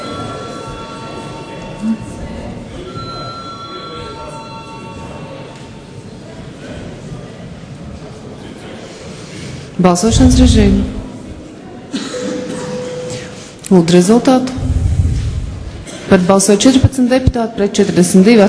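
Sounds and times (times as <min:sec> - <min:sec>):
parliament voting bell ringing: 0:00.0 - 0:02.2, 0:02.8 - 0:05.8, 0:12.2 - 0:13.5
speech: 0:01.8 - 0:02.2, 0:09.8 - 0:11.0, 0:13.7 - 0:14.7, 0:16.1 - 0:18.4.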